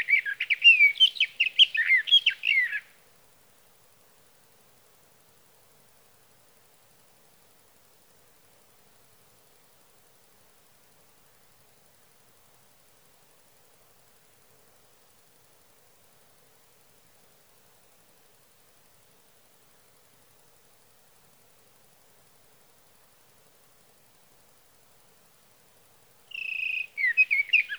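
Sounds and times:
sage thrasher: 0.0s - 2.9s, 26.3s - 27.7s.

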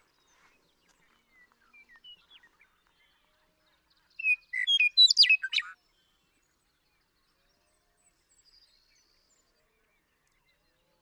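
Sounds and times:
western meadowlark singing: 4.2s - 5.7s.

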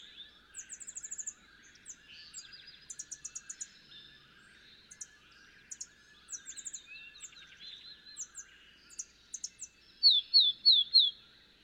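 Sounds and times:
field sparrow singing sweet whistled notes: 0.0s - 11.3s.

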